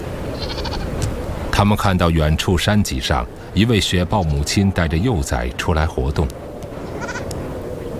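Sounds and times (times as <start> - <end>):
goat bleating: 0.3 - 0.9, 6.8 - 7.2
speech: 1.6 - 6.4.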